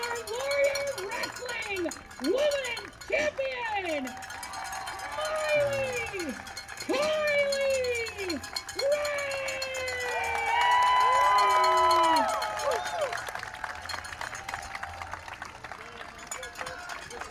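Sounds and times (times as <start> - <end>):
crowd clapping and cheering: 0.0 - 17.2
wrestling crowd roaring in ovation at a Warrior Wrestling show: 4.1 - 13.8.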